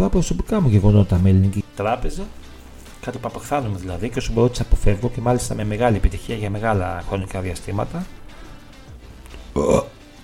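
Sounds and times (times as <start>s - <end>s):
speech: 0.0s - 8.2s, 9.6s - 9.9s
burp: 9.3s - 10.0s.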